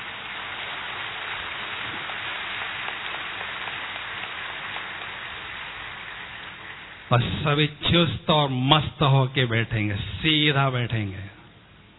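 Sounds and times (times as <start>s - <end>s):
crowd clapping loudly: 0.0s - 7.2s
speech: 7.1s - 11.3s.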